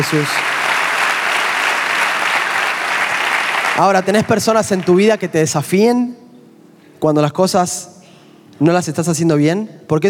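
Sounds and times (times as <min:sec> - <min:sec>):
speech: 0:00.0 - 0:00.5, 0:03.8 - 0:06.2, 0:07.0 - 0:08.0, 0:08.6 - 0:10.0
audience applauding: 0:00.0 - 0:05.3.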